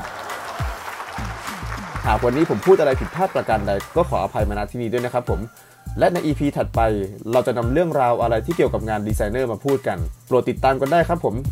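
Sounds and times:
loud applause: 0:00.0 - 0:04.0
speech: 0:02.0 - 0:11.5.

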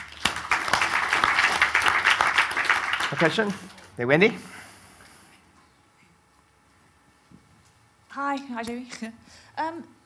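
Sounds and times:
audience applause: 0:00.0 - 0:03.9
speech: 0:03.1 - 0:04.6, 0:08.2 - 0:10.0.

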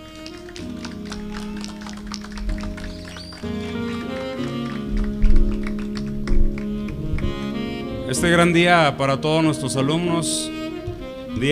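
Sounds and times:
audience applause for graduating students: 0:00.0 - 0:07.4
speech: 0:08.1 - 0:10.6.

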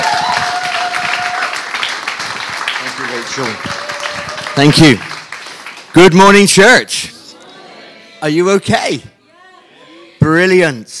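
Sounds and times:
church congregation applauding to welcome a guest preacher: 0:00.0 - 0:06.7
speech: 0:03.4 - 0:03.7, 0:04.6 - 0:05.1, 0:06.0 - 0:07.1, 0:08.2 - 0:09.1, 0:10.2 - 0:10.9.

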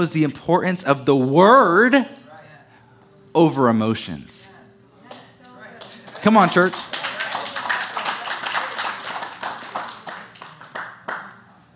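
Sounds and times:
speech: 0:00.0 - 0:02.2, 0:03.4 - 0:04.5, 0:06.2 - 0:07.0
audience clapping: 0:05.8 - 0:11.6.

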